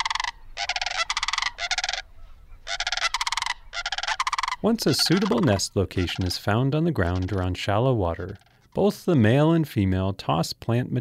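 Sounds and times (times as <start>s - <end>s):
sandhill cranes' loud rolling trumpeting calls: 0.0s - 7.5s, 8.2s - 8.8s
speech: 4.6s - 10.9s.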